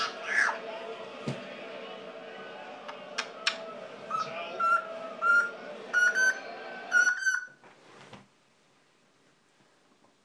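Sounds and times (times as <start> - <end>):
pet parrot squawking: 0.0 - 0.6
murmur: 0.0 - 7.1.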